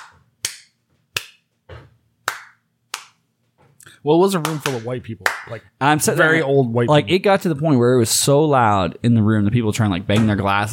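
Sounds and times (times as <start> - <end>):
off-tempo hand clapping demonstration: 0.0 - 1.5, 2.2 - 3.2, 4.4 - 5.6
speech: 4.0 - 10.7.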